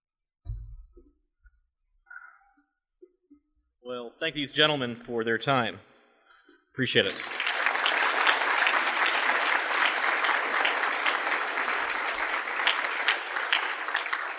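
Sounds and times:
speech: 0:03.9 - 0:05.9, 0:06.8 - 0:07.4
audience applause: 0:07.0 - 0:14.3.

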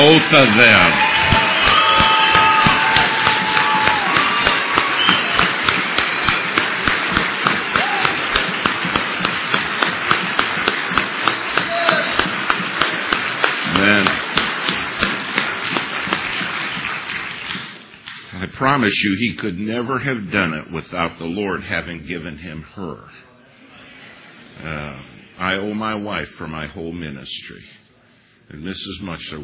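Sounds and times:
audience applause: 0:00.0 - 0:18.0
speech: 0:00.2 - 0:01.1, 0:18.7 - 0:23.3, 0:24.6 - 0:27.8, 0:28.5 - 0:29.4.

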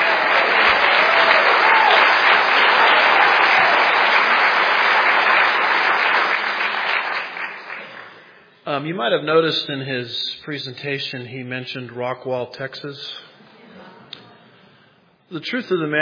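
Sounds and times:
audience applause: 0:00.0 - 0:08.4
speech: 0:08.8 - 0:13.3, 0:15.3 - 0:15.9.

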